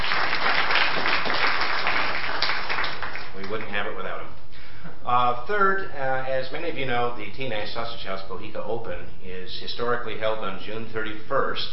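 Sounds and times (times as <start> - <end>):
audience applause: 0.0 - 3.5
speech: 5.1 - 11.7.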